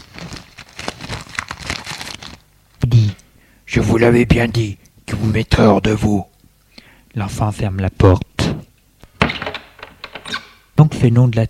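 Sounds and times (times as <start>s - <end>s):
newspaper being folded: 0.0s - 2.5s
speech: 3.8s - 6.3s, 7.1s - 8.3s, 11.0s - 11.4s.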